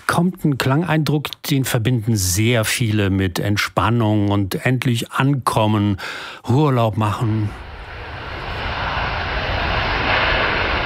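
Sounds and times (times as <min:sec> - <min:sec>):
speech: 0:00.2 - 0:07.7
Airbus A350-1000 airliner landing: 0:07.1 - 0:10.8.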